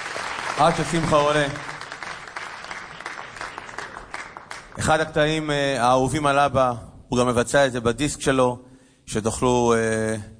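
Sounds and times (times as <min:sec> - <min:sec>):
audience applause for a cantor at a concert: 0:00.0 - 0:05.1
speech: 0:00.6 - 0:01.7, 0:04.8 - 0:10.3.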